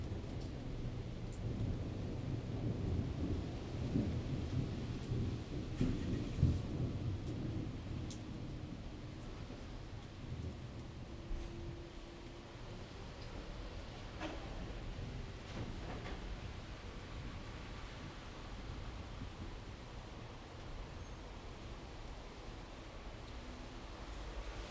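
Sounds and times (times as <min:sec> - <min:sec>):
rain in the city: 0:00.0 - 0:24.6
thunder in the city: 0:00.3 - 0:09.7, 0:14.0 - 0:19.6.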